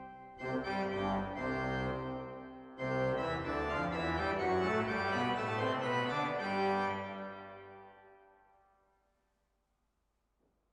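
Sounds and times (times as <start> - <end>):
organ recorded through a cardioid microphone: 0.0 - 7.9.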